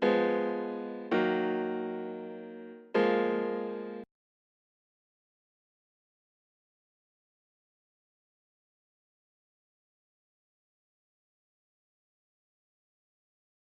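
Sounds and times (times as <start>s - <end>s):
instrumental music: 0.0s - 4.0s.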